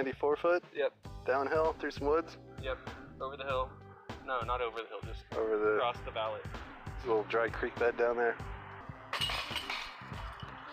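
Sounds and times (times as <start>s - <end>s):
speech: 0.0s - 8.6s
disc hitting disc golf basket chains: 9.1s - 10.1s.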